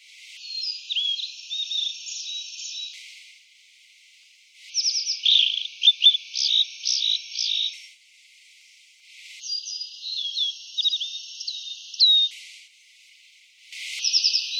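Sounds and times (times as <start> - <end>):
blue-and-white flycatcher song: 0.3 - 3.2, 4.7 - 7.9, 9.4 - 12.4, 13.8 - 14.5.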